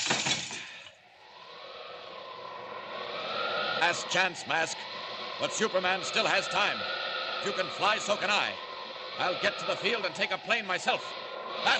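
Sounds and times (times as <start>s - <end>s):
window glass breaking: 0.0s - 0.7s
speech: 3.8s - 8.6s, 9.2s - 11.7s.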